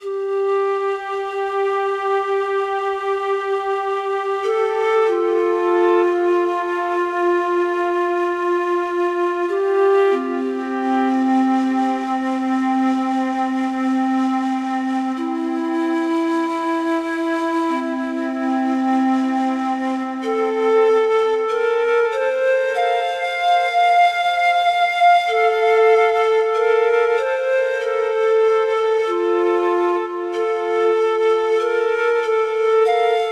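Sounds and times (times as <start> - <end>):
flute: 0.0 - 33.3.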